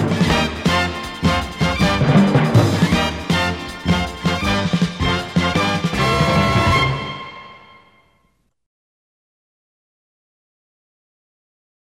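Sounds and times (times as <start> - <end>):
news closing music: 0.0 - 8.0.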